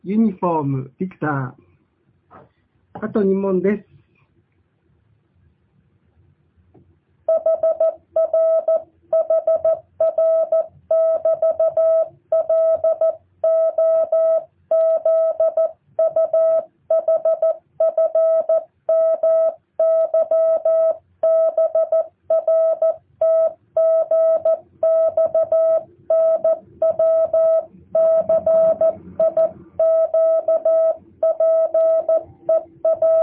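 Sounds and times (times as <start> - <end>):
speech: 0.0 - 1.6, 2.3 - 3.9, 7.3 - 33.2
Morse code tones: 7.3 - 33.2.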